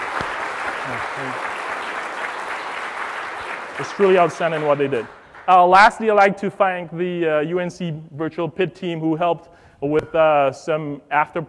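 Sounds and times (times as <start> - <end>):
round of applause: 0.0 - 6.2
speech: 0.9 - 1.5, 3.8 - 11.4.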